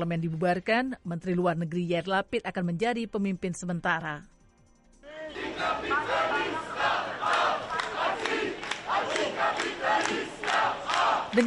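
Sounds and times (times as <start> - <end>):
speech: 0.0 - 4.3
large crowd of demonstrators chanting in the street: 5.0 - 11.4.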